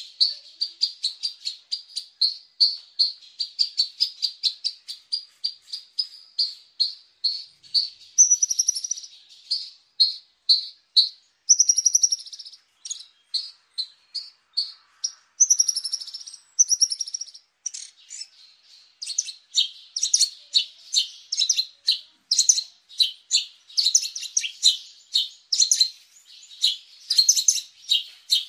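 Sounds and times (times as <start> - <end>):
Horsfield's bushlark song with high chirped notes: 0.0 - 28.4.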